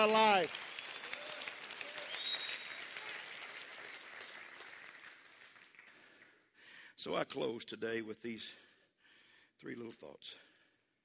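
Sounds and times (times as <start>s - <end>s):
speech: 0.0s - 0.7s, 7.0s - 8.6s, 9.6s - 10.5s
audience clapping hands: 0.0s - 6.6s.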